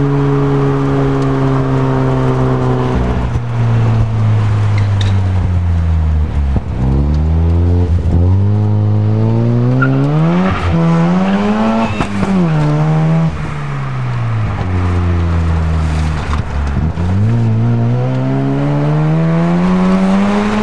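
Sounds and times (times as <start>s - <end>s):
SA22C RX7 GT 12A turbo engine: 0.0s - 20.6s.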